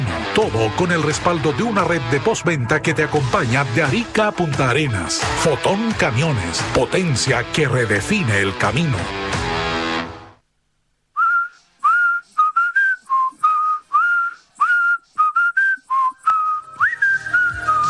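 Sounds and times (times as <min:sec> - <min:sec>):
speech: 0:00.4 - 0:09.5
whistled pop song melody: 0:11.2 - 0:17.8.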